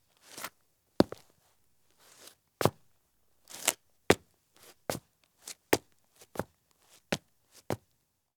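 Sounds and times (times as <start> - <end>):
men's medium business shoes footsteps on concrete: 0.3 - 1.3, 3.5 - 7.8.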